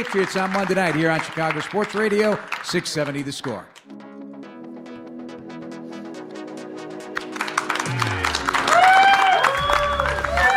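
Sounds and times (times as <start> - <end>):
speech: 0.0 - 3.8
Magellan Corporation and USO Illinois guests clapping and cheering: 0.0 - 4.0, 6.5 - 10.5.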